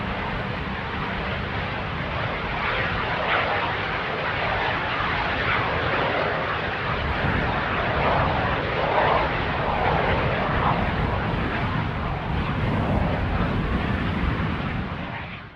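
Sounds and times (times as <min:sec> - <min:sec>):
strong howling wind in Texas: 0:00.0 - 0:15.5.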